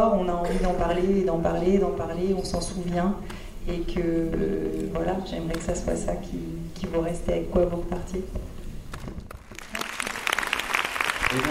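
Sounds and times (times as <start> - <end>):
speech: 0.5 - 8.5, 11.3 - 11.5
audience applause: 9.3 - 11.5.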